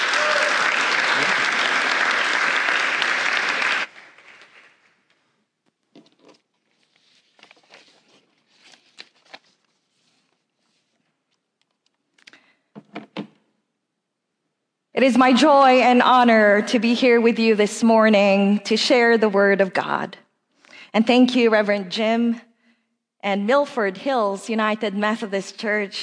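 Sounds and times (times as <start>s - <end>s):
audience applause: 0.0s - 5.0s
speech: 15.0s - 20.2s, 20.9s - 22.5s, 23.2s - 26.0s.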